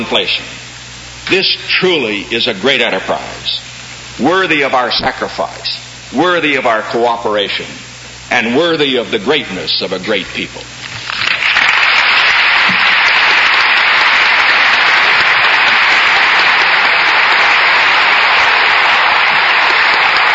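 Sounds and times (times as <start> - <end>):
speech: 0.0 - 0.6, 1.3 - 10.7
congress applauding after a speech: 11.0 - 20.3.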